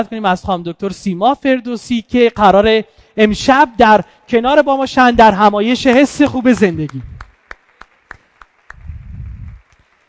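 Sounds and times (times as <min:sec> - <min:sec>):
speech: 0:00.0 - 0:07.1
audience applause: 0:06.7 - 0:10.0.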